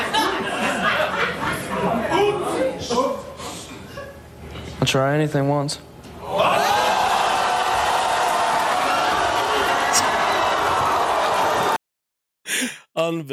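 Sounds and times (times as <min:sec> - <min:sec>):
laughter: 0:00.0 - 0:02.6
speech: 0:04.9 - 0:05.9, 0:13.1 - 0:13.3
excited crowd cheering: 0:06.2 - 0:11.8.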